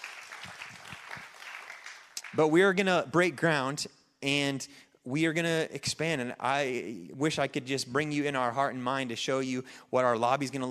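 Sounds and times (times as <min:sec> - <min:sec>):
audience clapping: 0:00.0 - 0:02.5
speech: 0:02.4 - 0:10.6.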